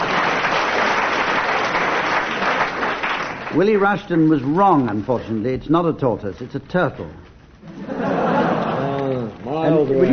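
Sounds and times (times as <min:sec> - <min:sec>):
audience applause: 0:00.0 - 0:03.8
speech: 0:03.6 - 0:08.0, 0:09.5 - 0:10.1
laughter: 0:07.6 - 0:10.1.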